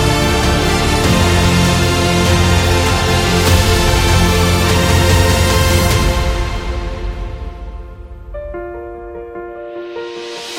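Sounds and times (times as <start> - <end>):
victory jingle: 0.0 - 7.3.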